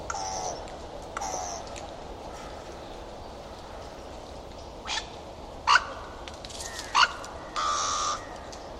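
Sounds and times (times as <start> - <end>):
bird giving harsh nasal cawing calls: 0.1 - 2.8, 5.7 - 8.6.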